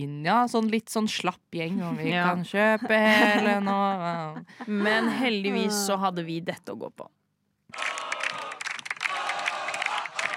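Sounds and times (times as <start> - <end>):
speech: 0.0 - 8.0
clapping: 7.7 - 10.3
crowd of football cup winners cheering and whooping: 7.8 - 10.3.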